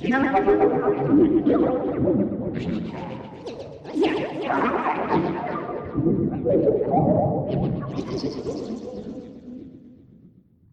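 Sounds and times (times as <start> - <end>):
surreal alien sci-fi voices atmosphere: 0.0 - 9.5.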